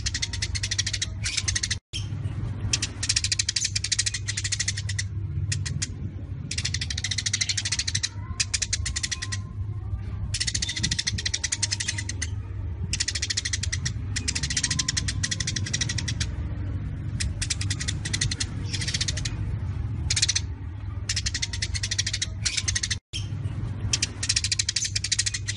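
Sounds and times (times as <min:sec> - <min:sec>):
Eurasian tree sparrow chattering: 0:00.0 - 0:02.1, 0:02.7 - 0:09.6, 0:10.4 - 0:23.3, 0:23.9 - 0:25.5.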